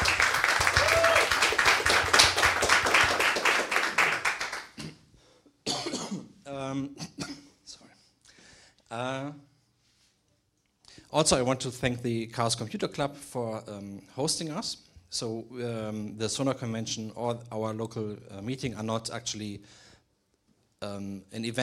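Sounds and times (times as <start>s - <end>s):
audience applause: 0.0s - 4.8s
speech: 11.1s - 19.8s, 20.8s - 21.6s.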